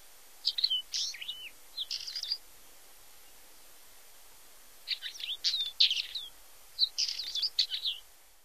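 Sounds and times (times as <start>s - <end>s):
Northern Wheatear singing: 0.4s - 2.4s, 4.8s - 8.1s.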